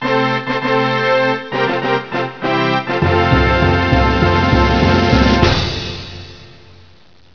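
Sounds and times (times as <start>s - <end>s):
fanfare: 0.0s - 6.8s.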